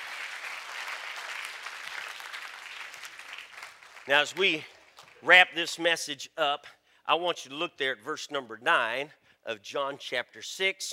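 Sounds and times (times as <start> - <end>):
crowd clapping: 0.0 - 5.3
speech: 4.0 - 10.9.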